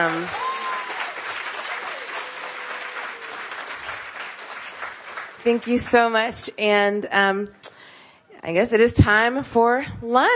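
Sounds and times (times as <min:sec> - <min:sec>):
speech: 0:00.0 - 0:00.4, 0:05.4 - 0:07.6, 0:08.4 - 0:10.3
audience applause: 0:00.0 - 0:06.1
faint whistles and cheers: 0:00.2 - 0:04.1.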